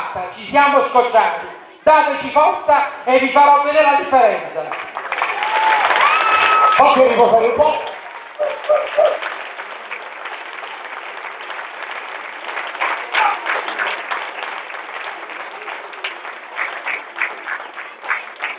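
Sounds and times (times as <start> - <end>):
speech: 0.1 - 4.9, 6.8 - 7.9
crowd audience applause: 4.7 - 18.5.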